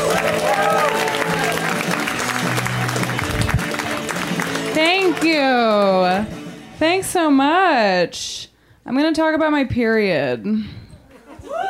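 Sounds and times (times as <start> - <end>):
audience applause: 0.0 - 6.0
speech: 5.2 - 10.8.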